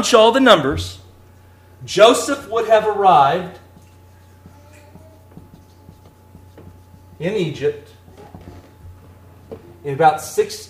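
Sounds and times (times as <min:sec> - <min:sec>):
speech: 0:00.0 - 0:01.0, 0:01.8 - 0:03.6, 0:07.2 - 0:08.0, 0:09.8 - 0:10.6
writing dates on a board: 0:03.5 - 0:09.8.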